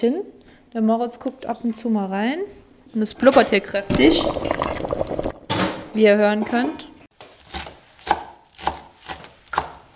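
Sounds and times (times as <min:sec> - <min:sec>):
speech: 0:00.0 - 0:04.8, 0:06.0 - 0:06.9
knife chopping parsley: 0:07.4 - 0:09.9.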